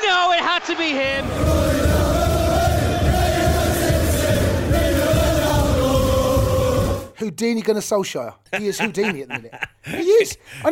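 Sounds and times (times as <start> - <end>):
football stadium crowd roaring: 0.0 - 7.1
speech: 7.2 - 10.7
laughter: 8.5 - 10.4.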